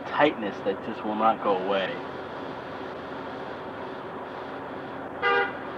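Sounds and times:
speech: 0.1 - 2.2
car horn toot: 5.2 - 5.6.

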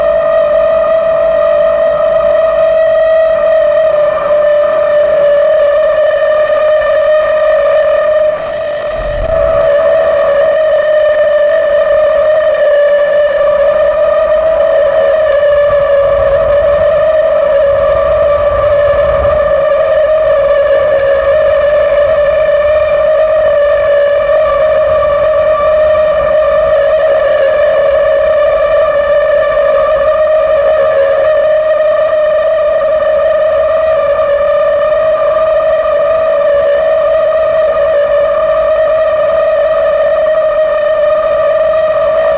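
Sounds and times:
railroad switch gas-jet flute tone: 0.0 - 42.3
faint rumble: 3.8 - 32.7
low thump: 8.9 - 10.0.

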